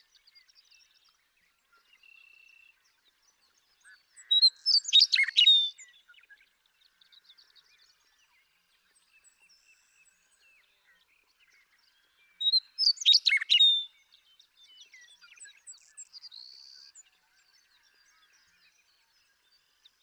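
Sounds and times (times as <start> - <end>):
Western Meadowlark singing: 4.2 - 6.0, 12.4 - 17.0.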